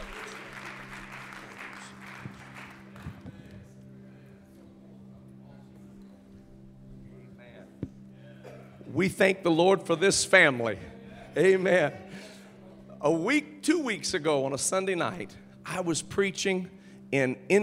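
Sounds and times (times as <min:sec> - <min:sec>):
audience hand clapping: 0:00.0 - 0:03.6
speech: 0:09.0 - 0:12.2, 0:13.0 - 0:17.6.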